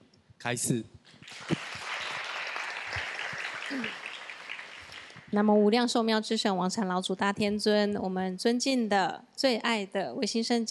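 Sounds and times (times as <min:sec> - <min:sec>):
speech: 0:00.4 - 0:01.6, 0:03.7 - 0:04.0, 0:05.3 - 0:10.6
crowd applauding: 0:01.1 - 0:05.4.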